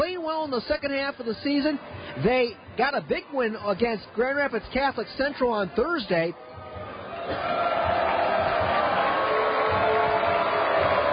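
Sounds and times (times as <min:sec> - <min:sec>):
speech: 0:00.4 - 0:06.5, 0:07.3 - 0:07.9
crowd booing: 0:06.4 - 0:11.1.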